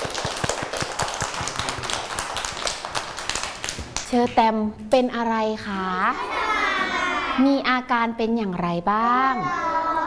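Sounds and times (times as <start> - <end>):
children clapping: 0.0 - 4.4
speech: 4.1 - 6.5, 7.4 - 9.7.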